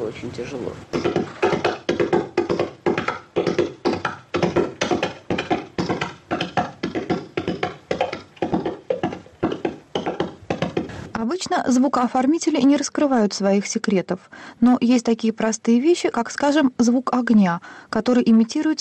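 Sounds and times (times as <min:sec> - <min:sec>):
speech: 0:00.1 - 0:01.4, 0:11.6 - 0:18.7
galloping hooves imitated by hand: 0:00.9 - 0:11.0.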